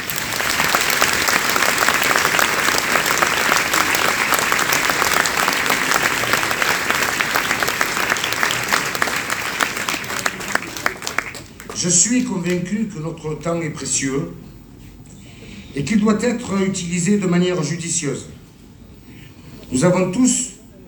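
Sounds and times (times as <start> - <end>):
audience applause: 0.0 - 12.6
speech: 11.8 - 14.5, 15.8 - 18.4, 19.7 - 20.4.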